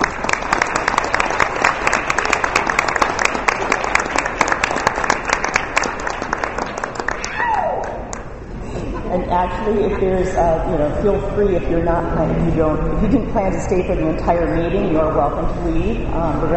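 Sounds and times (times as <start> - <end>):
audience applause for a band: 0.0 - 8.3
laughter: 8.6 - 10.8
speech: 9.4 - 16.5.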